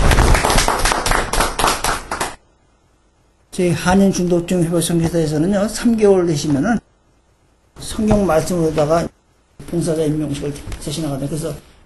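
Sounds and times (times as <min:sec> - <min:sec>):
small group applauding: 0:00.0 - 0:02.4
speech: 0:03.6 - 0:06.8, 0:07.8 - 0:11.7.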